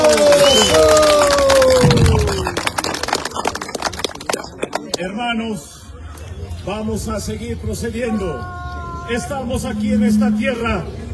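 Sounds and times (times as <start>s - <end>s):
crowd clapping: 0.0s - 5.1s
speech: 5.3s - 5.7s, 6.7s - 11.0s.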